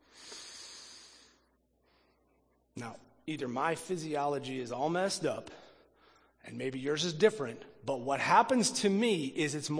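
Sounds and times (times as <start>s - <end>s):
deep breath drawn in through the nose with the mouth closed: 0.0s - 2.2s
speech: 2.8s - 5.6s, 6.4s - 9.7s.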